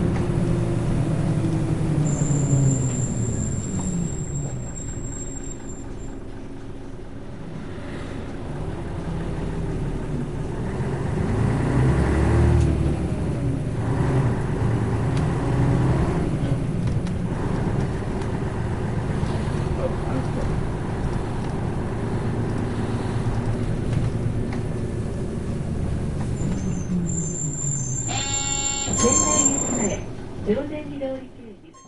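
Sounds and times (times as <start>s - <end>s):
Isuzu P-LV214M bus driving in Sendai: 0.0s - 31.8s.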